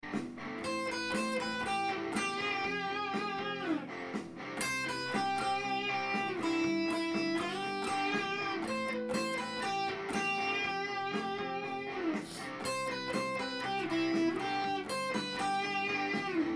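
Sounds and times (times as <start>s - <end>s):
slow jazz guitar: 0.0s - 16.5s.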